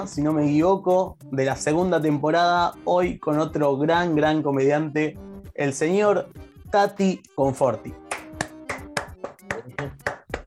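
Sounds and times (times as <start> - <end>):
speech: 0.0 - 8.0
hand clapping: 8.0 - 10.4.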